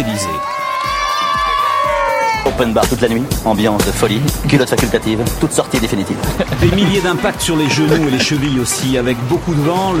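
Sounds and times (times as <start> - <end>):
spectators cheering loudly along a race course: 0.0 - 2.9, 6.6 - 9.9
speech: 2.5 - 9.9
laughter: 6.0 - 9.2.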